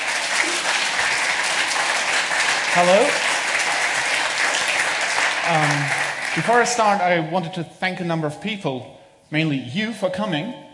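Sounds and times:
audience applause: 0.0 - 7.1
speech: 2.8 - 3.3, 5.5 - 10.7.

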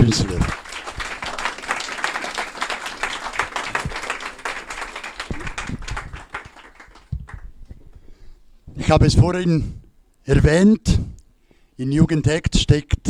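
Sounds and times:
speech: 0.0 - 0.4, 8.9 - 11.1, 11.8 - 13.0
audience applause: 0.0 - 7.6.

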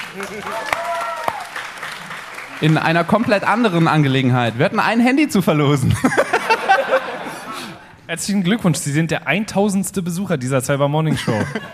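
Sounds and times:
audience applause: 0.0 - 4.7
speech: 0.1 - 1.0, 2.6 - 6.4, 8.1 - 11.7
laughter: 5.8 - 8.0, 11.1 - 11.7.

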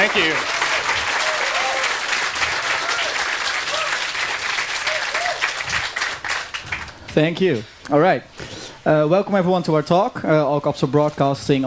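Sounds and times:
speech: 0.0 - 0.6, 7.2 - 11.6
audience applause: 0.0 - 7.1.

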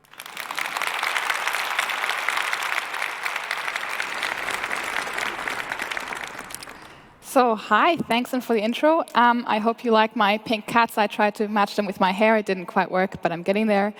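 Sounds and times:
audience applause: 0.0 - 7.2
speech: 7.3 - 13.9.

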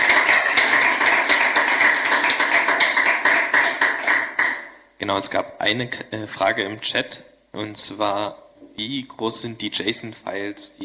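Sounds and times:
audience applause: 0.0 - 4.8
speech: 5.1 - 10.8.

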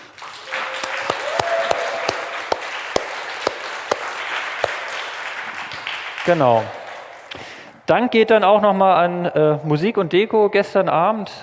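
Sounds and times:
audience applause: 0.0 - 7.6
speech: 6.3 - 6.8, 7.9 - 11.4.

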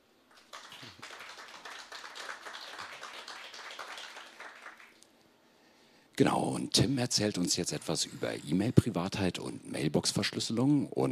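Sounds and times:
audience applause: 0.3 - 5.0
speech: 6.2 - 11.1.

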